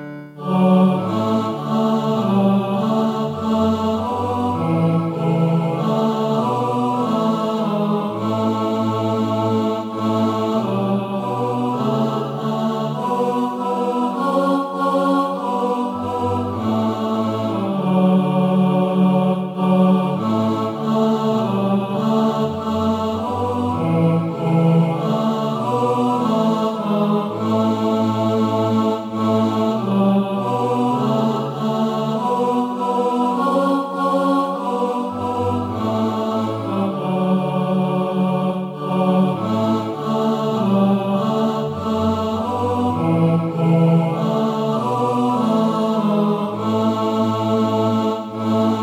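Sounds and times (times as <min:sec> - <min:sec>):
tenor singing: 0:00.4 - 0:48.8.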